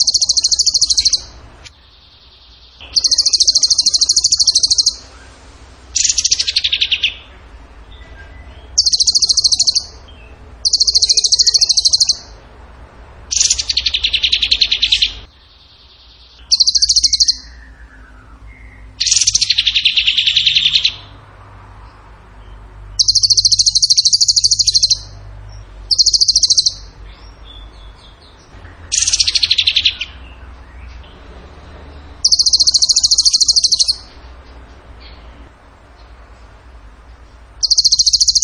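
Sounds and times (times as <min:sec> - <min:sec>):
bird song in high rattling and buzzy trills: 0:00.0 - 0:05.3, 0:05.9 - 0:12.4, 0:13.3 - 0:21.1, 0:22.9 - 0:31.0, 0:32.1 - 0:34.2, 0:37.6 - 0:38.4.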